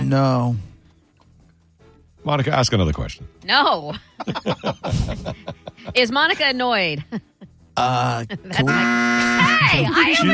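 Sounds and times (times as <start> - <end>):
speech: 0.1 - 0.7, 2.2 - 10.3
laughter: 5.8 - 6.3
game show buzzer: 8.6 - 10.3.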